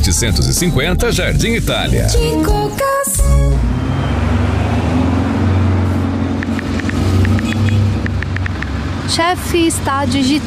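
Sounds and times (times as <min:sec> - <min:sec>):
speech: 0:00.1 - 0:04.1, 0:09.1 - 0:10.4
car braking and skidding: 0:03.6 - 0:09.0.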